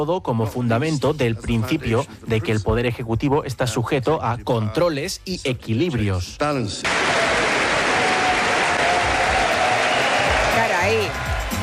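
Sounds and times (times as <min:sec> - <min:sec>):
speech: 0:00.0 - 0:07.3
applause: 0:06.9 - 0:11.6.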